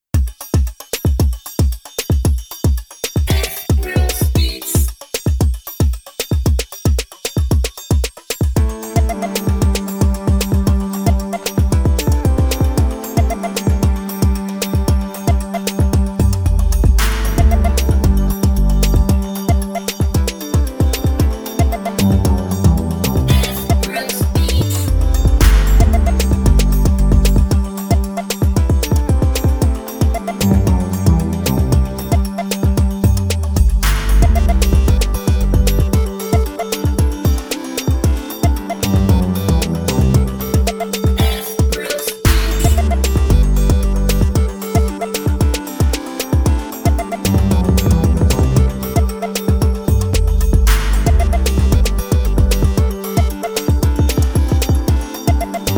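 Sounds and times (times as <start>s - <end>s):
beat at 114 BPM: 0.2s - 55.7s.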